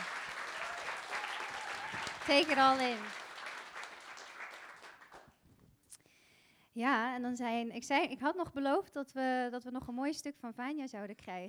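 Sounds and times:
audience applause: 0.0 - 5.3
speech: 2.3 - 3.2, 6.8 - 11.4.

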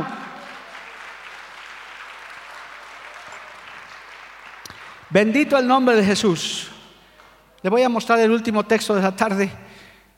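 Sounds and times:
audience applause: 0.0 - 5.2
speech: 5.1 - 6.8, 7.6 - 9.8.

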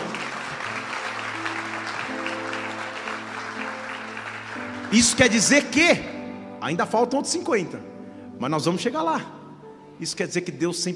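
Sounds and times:
audience applause: 0.0 - 5.8
low sustained keyboard chords: 0.0 - 10.9
speech: 4.9 - 9.4, 10.0 - 10.9.

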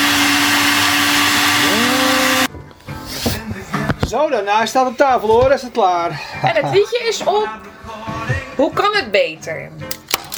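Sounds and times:
blender mixing a pina colada: 0.0 - 2.5
speech: 4.1 - 7.7, 8.3 - 10.0.

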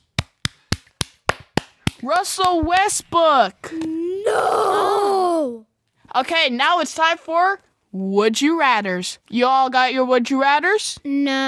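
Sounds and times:
hand clap: 0.0 - 2.9
speech: 2.0 - 11.4.

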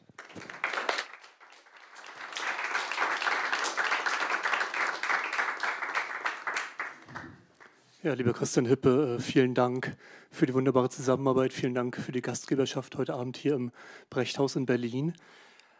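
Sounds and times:
audience applause: 0.0 - 7.8
speech: 8.0 - 15.5.

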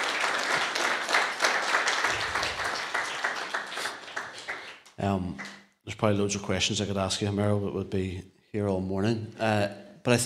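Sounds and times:
audience applause: 0.0 - 5.6
speech: 5.0 - 10.2.

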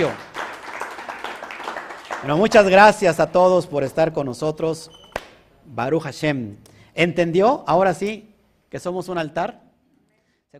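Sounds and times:
speech: 0.0 - 0.2, 2.2 - 5.0, 5.6 - 9.6
audience applause: 0.0 - 2.8.

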